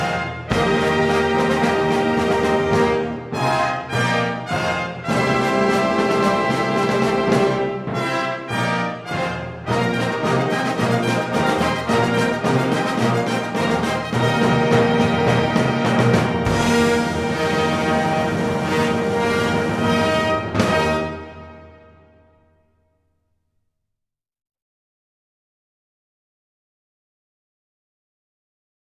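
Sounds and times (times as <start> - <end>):
fanfare: 0.0 - 22.2.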